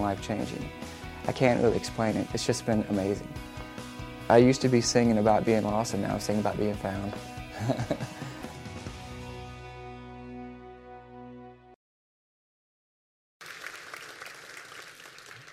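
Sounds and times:
speech: 0.0s - 3.5s, 4.3s - 8.2s
laughter: 7.5s - 8.5s
audience applause: 13.4s - 15.5s.

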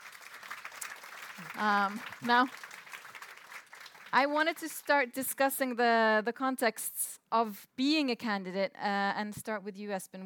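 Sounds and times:
audience applause: 0.0s - 4.2s
speech: 1.4s - 2.7s, 4.1s - 10.2s.

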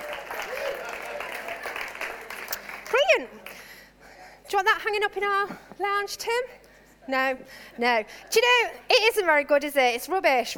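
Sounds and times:
small group clapping: 0.0s - 3.6s
speech: 3.2s - 3.7s, 4.5s - 10.5s.

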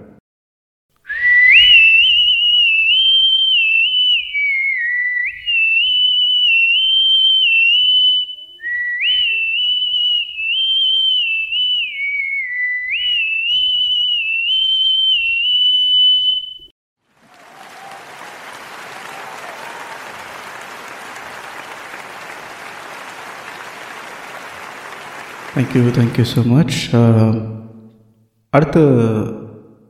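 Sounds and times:
person whistling a lively film song melody: 1.1s - 16.7s
speech: 25.6s - 27.6s, 28.5s - 29.4s.

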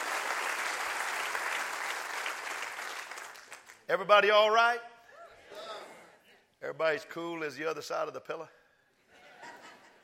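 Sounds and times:
crowd applauding: 0.0s - 3.8s
speech: 3.9s - 4.9s, 6.6s - 8.6s
laughter: 9.0s - 10.0s.

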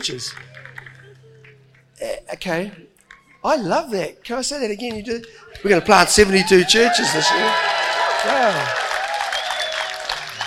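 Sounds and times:
speech: 0.0s - 0.7s, 2.0s - 8.8s
audience clapping: 0.0s - 1.2s, 6.2s - 10.4s
faint cheers: 6.2s - 10.4s.

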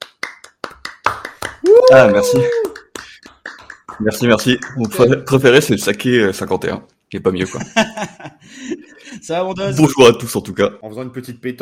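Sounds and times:
applause: 0.0s - 5.0s
speech: 1.9s - 2.7s, 4.0s - 11.5s
laughter: 7.4s - 9.3s.

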